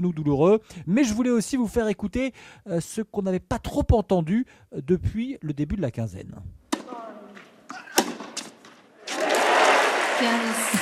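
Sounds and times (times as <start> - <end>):
speech: 0.0 - 7.1, 10.2 - 10.8
audience applause at tennis court: 9.0 - 10.8.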